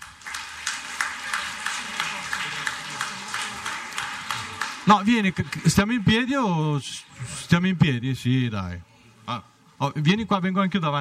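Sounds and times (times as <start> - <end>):
audience applause: 0.0 - 6.7
speech: 4.9 - 11.0.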